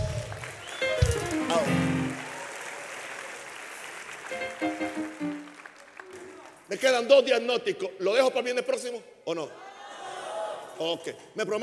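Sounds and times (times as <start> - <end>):
audience applause: 0.0 - 6.7
speech: 6.8 - 9.7, 10.8 - 11.6.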